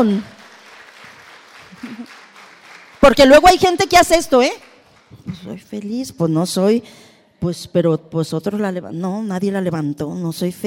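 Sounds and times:
speech: 0.0s - 0.3s, 3.0s - 10.6s
audience applause: 0.3s - 3.2s.

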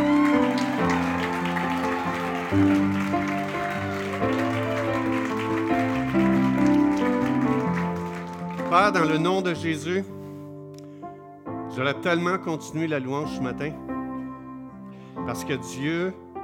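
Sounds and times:
audience applause: 0.0s - 9.4s
speech: 8.8s - 10.2s, 11.8s - 13.9s, 15.3s - 16.2s.

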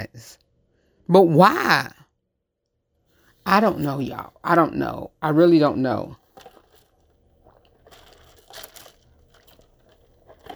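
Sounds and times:
speech: 1.1s - 2.0s, 3.5s - 6.2s
person drinking water from a bottle: 6.2s - 10.5s.

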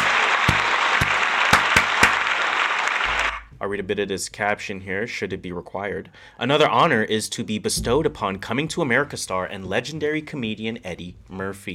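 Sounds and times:
round of applause: 0.0s - 3.5s
speech: 3.7s - 11.7s.

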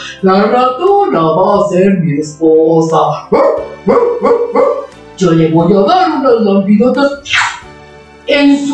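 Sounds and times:
speech: 0.2s - 7.4s, 8.3s - 8.7s
dog barking: 3.3s - 4.9s.

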